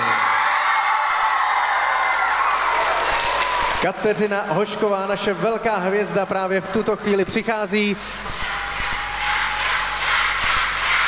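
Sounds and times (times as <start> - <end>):
large crowd cheering and applauding: 0.0 - 4.6, 8.1 - 11.0
speech: 3.8 - 8.5.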